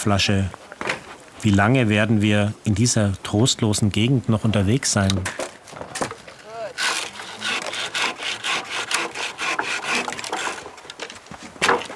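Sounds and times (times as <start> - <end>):
speech: 0.0 - 0.6, 1.4 - 5.4
saw cutting branches off tree trunks: 5.9 - 11.9.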